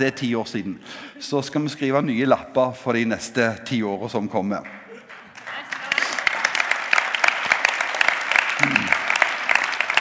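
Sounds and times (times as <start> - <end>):
speech: 0.0 - 4.8
audience applause: 5.1 - 9.9.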